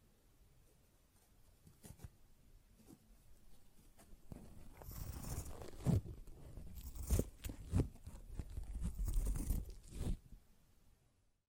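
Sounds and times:
sponge being handled with scratching and crunching: 0:04.7 - 0:10.2.

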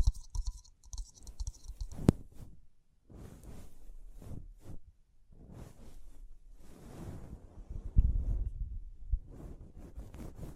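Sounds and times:
faint high crinkle: 0:00.0 - 0:02.1
scratching and brushing: 0:00.0 - 0:04.8, 0:05.4 - 0:07.7, 0:09.3 - 0:10.5.

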